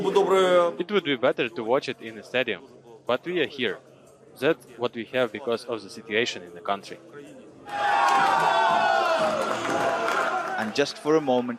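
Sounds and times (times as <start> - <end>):
speech: 0.0 - 8.8, 10.6 - 11.5
football fans cheering: 7.6 - 11.5.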